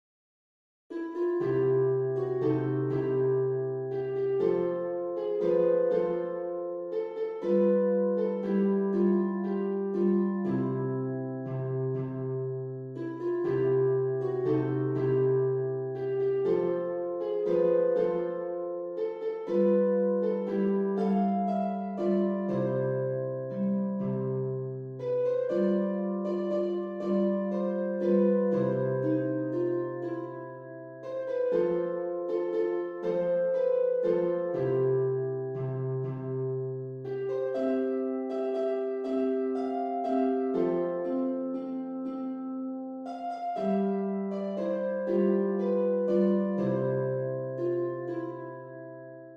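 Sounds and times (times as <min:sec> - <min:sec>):
harp: 0:00.9 - 0:49.3.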